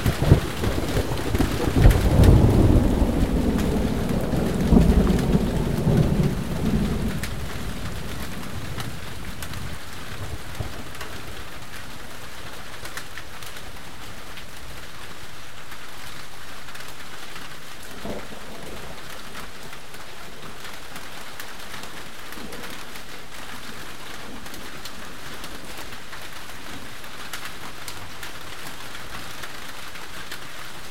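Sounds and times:
thunder: 0.0s - 11.2s
rain: 0.0s - 30.8s.

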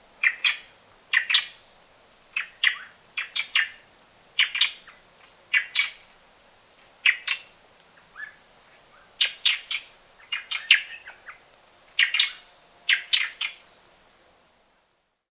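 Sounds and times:
plain-tailed wren singing in Ecuador: 0.2s - 1.6s, 2.4s - 3.8s, 4.4s - 6.1s, 6.9s - 11.4s, 12.0s - 13.8s.

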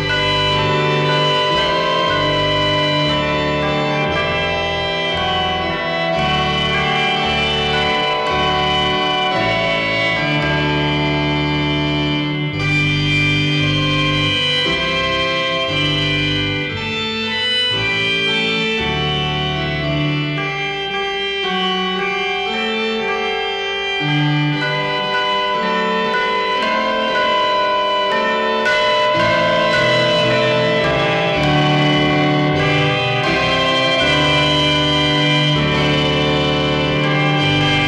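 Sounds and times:
Christmas chimes: 0.0s - 12.0s, 24.1s - 37.8s
Christmas organ: 0.0s - 37.8s.

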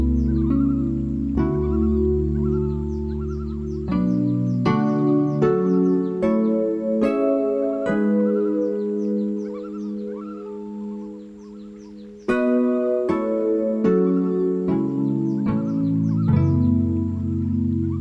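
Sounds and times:
loon tremolo: 0.0s - 18.0s.

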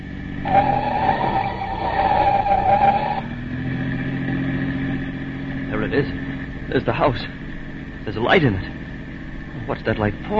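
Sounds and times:
police car engine roaring at speed: 0.0s - 10.3s
tires squealing through a turn: 0.3s - 5.0s
speech: 6.8s - 7.4s, 8.1s - 8.8s, 9.6s - 10.3s.

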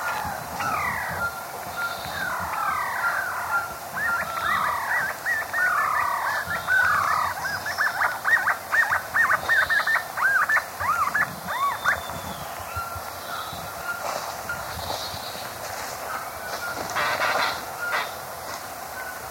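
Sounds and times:
White-necked Puffbird calling in South American eastern lowlands: 0.0s - 18.3s.

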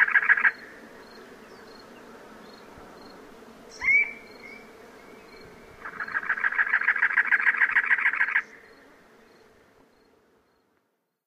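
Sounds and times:
North American cactus wren calling: 0.0s - 0.7s, 3.7s - 8.8s.

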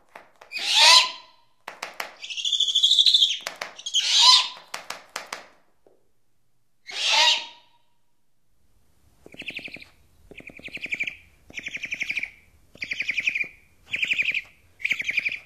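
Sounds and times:
Great Horned Owl from North America: 0.5s - 1.5s, 2.2s - 4.7s, 6.8s - 7.9s, 9.3s - 15.4s.

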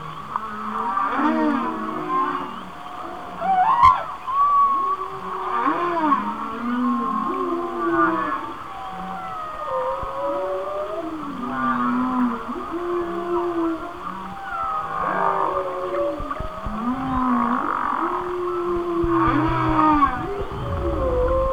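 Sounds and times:
whale song: 0.8s - 21.5s
steady hiss: 13.4s - 21.5s.

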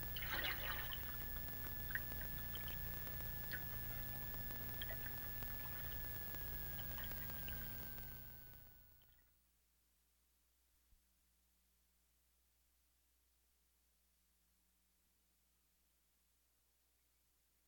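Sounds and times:
humpback whale song units with pulsed grating bursts and buzzy click trains: 0.1s - 8.5s.

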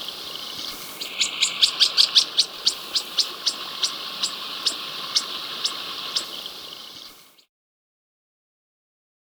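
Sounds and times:
Masked Mountain-Tanager in South America: 0.0s - 7.5s.

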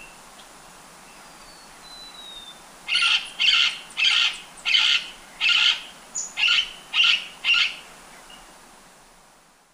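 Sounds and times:
White-capped parrot screeching in Ecuador: 2.9s - 7.7s.

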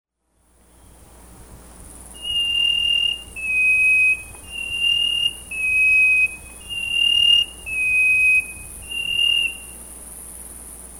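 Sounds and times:
faint hiss: 0.6s - 10.9s
chestnut-breasted wren whistling: 2.2s - 9.9s.

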